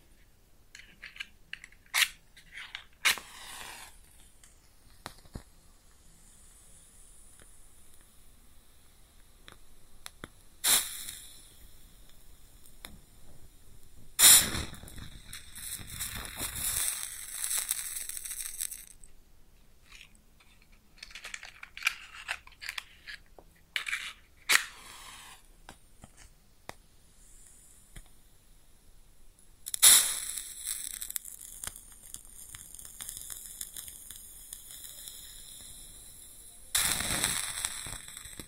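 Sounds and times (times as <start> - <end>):
matches crackling and sizzling as they burn: 0.7 - 28.5, 29.4 - 38.4
matches struck and flaring: 14.2 - 18.9, 29.7 - 35.1, 36.7 - 38.4.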